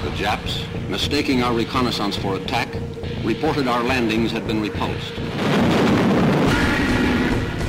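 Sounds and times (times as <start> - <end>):
speech: 0.2 - 5.7
naval artillery bombardment explosions: 5.3 - 7.6.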